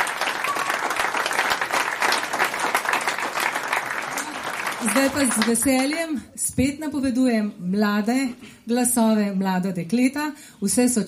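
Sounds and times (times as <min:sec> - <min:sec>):
audience applause: 0:00.0 - 0:06.0
speech: 0:04.8 - 0:11.0.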